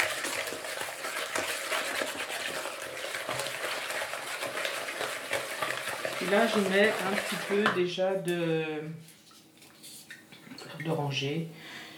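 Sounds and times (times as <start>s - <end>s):
yogurt and sugar stirred vigorously in a bowl: 0.0s - 8.0s
speech: 6.2s - 9.1s, 10.8s - 11.6s.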